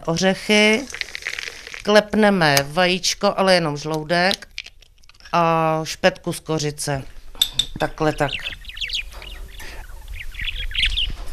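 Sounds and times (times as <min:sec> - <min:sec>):
speech: 0:00.0 - 0:01.0, 0:01.8 - 0:04.5, 0:05.3 - 0:08.6
pet budgerigar chirping and twittering: 0:08.1 - 0:11.3.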